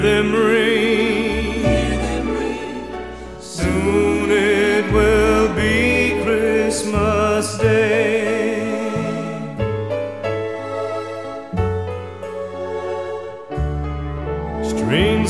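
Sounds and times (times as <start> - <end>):
man singing: 0.0 - 2.6, 3.4 - 9.5, 14.7 - 15.2
orchestra playing: 0.0 - 15.2.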